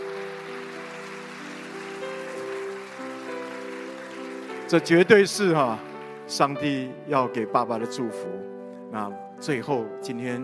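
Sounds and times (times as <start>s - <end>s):
audience applause: 0.0s - 6.8s
speech: 4.7s - 10.4s.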